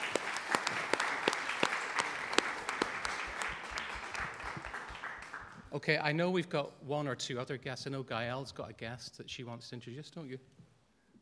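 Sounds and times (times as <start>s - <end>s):
audience applause: 0.0s - 5.7s
speech: 5.8s - 10.6s.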